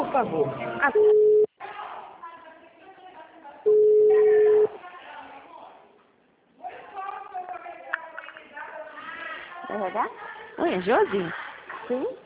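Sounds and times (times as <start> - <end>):
speech: 0.2 - 1.2, 10.7 - 12.2
telephone line tone while a call to a Santander contact is transferred: 3.7 - 4.7.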